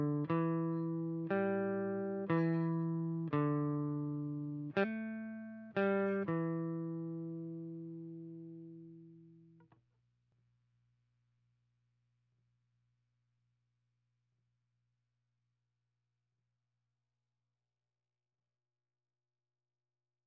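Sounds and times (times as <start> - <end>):
MIDI guitar: 0.0 - 9.6.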